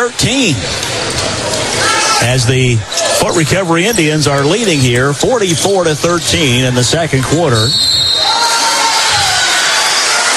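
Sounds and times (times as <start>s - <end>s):
speech: 0.0s - 1.4s, 2.2s - 8.0s
basketball crowd standing and cheering after a foul call: 0.8s - 3.3s, 7.8s - 10.3s.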